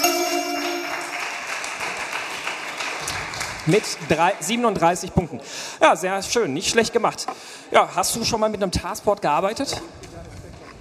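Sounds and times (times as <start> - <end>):
tonal chime: 0.0 - 1.5
applause: 0.0 - 5.2
speech: 3.7 - 10.2.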